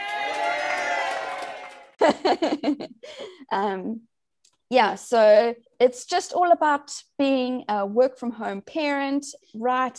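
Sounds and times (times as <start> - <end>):
inserted applause sound effect: 0.0 - 2.0
laughter: 2.0 - 3.1
speech: 2.1 - 4.1, 4.7 - 9.9.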